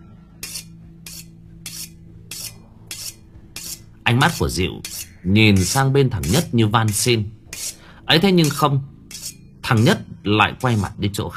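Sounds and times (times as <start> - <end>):
knife blade scraping as it is sharpened in a basement: 0.4 - 11.0
speech: 4.1 - 7.4, 8.1 - 8.9, 9.7 - 11.3.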